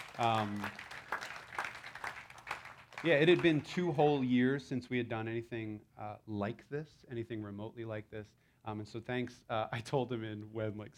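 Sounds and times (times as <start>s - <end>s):
audience round of applause: 0.0s - 3.8s
speech: 0.2s - 0.9s, 3.0s - 10.9s.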